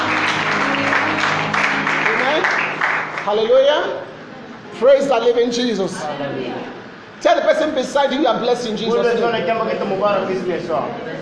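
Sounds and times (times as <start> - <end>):
audience clapping: 0.0 - 3.9
speech: 3.3 - 4.1, 4.8 - 11.2.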